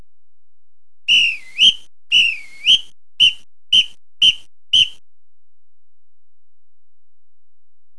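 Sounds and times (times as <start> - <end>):
whistle: 1.1 - 5.0.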